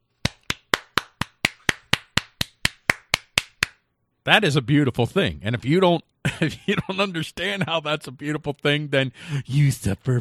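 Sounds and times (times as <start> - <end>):
one person clapping hands: 0.1 - 3.8
speech: 4.2 - 10.1
laughter: 6.2 - 10.1.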